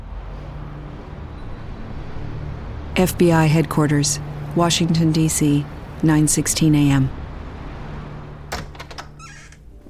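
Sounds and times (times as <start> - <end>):
speech: 3.0 - 7.2
door latch clicks: 8.5 - 9.6
door hinge squeak: 8.6 - 9.8.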